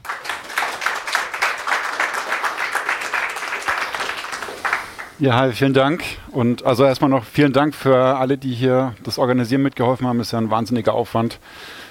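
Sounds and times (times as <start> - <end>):
audience applause: 0.0 - 5.2
speech: 5.2 - 11.8.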